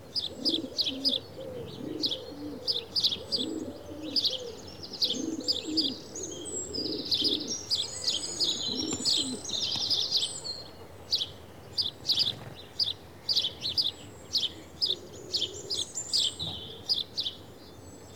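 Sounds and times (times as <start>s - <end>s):
House Sparrow Passer domesticus: 0.1s - 17.4s.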